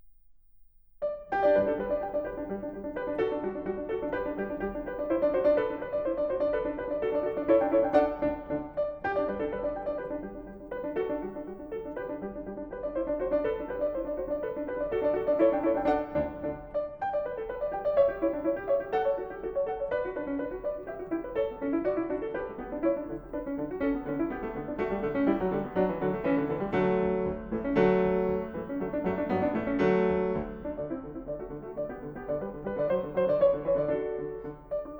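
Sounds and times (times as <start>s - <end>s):
solo piano: 1.0s - 34.9s.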